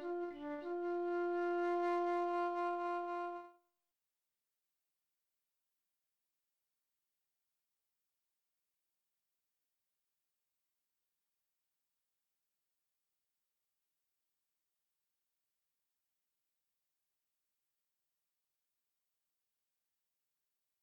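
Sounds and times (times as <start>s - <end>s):
flute melody in F: 0.0s - 3.5s.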